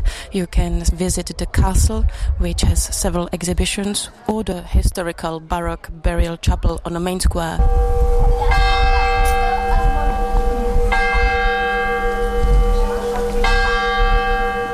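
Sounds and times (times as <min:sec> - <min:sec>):
steady low rumble: 0:00.0 - 0:03.8, 0:05.6 - 0:14.7
speech: 0:00.3 - 0:08.7
church tower clock bell tolling: 0:07.7 - 0:14.7.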